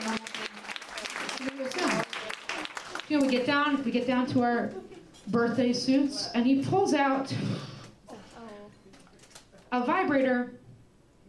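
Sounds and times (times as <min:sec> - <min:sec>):
audience applause: 0:00.0 - 0:03.6
speech: 0:03.1 - 0:07.7, 0:09.7 - 0:10.6.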